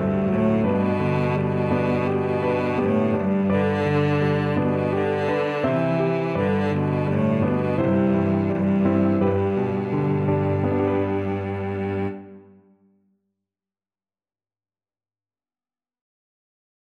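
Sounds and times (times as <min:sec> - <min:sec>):
cello: 0:00.0 - 0:12.8.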